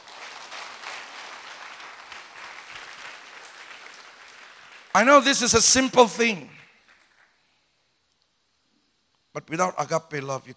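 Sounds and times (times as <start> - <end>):
audience applauding: 0.0 - 7.3
speech: 5.0 - 6.6, 9.5 - 10.5.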